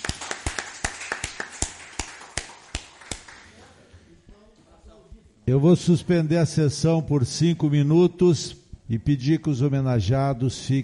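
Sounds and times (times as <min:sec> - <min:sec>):
audience applause: 0:00.0 - 0:03.4
speech: 0:05.5 - 0:10.8.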